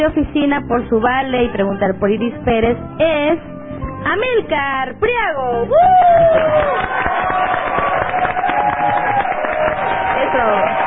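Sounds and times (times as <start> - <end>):
speech: 0.0 - 6.8
crowd clapping: 5.8 - 10.8.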